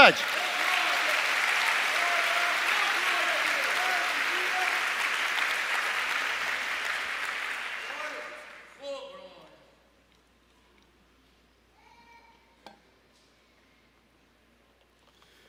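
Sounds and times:
audience applauding: 0.0 - 8.8.

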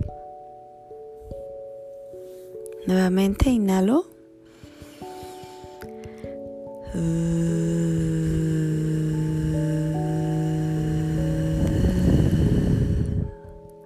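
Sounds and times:
speech: 2.8 - 4.1, 7.0 - 8.3
person humming a low buzzing drone imitating a bee: 6.8 - 13.3.

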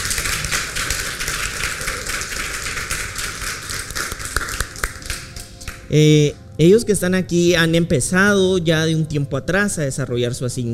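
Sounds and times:
audience applause: 0.0 - 5.8
speech: 5.9 - 10.7.

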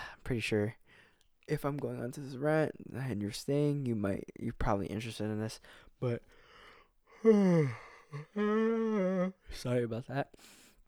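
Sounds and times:
speech: 0.3 - 0.8, 1.5 - 6.4, 7.2 - 10.6
person yawning: 7.2 - 9.4.

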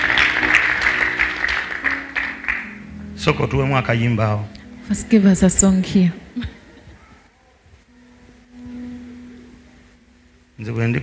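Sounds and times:
audience clapping: 0.0 - 2.9
speech: 3.2 - 6.5, 10.6 - 11.0.

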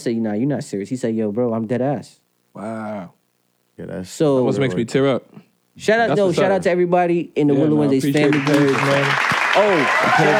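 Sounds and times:
speech: 0.0 - 3.2, 3.8 - 10.3
clapping and applause: 8.2 - 10.3.

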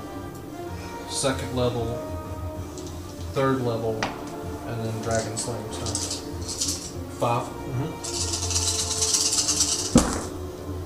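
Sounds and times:
speech: 1.1 - 2.2, 3.4 - 8.3
dice rattling on a table: 5.2 - 7.0, 8.0 - 10.4.

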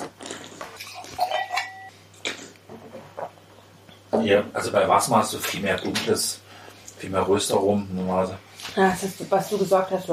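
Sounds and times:
wine glass picked up and set down: 1.2 - 1.9
speech: 4.2 - 6.4, 7.0 - 10.1.

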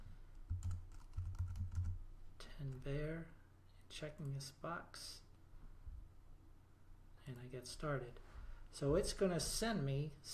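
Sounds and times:
typing a code on a computer keyboard: 0.5 - 2.0
speech: 2.6 - 5.2, 7.2 - 10.3.

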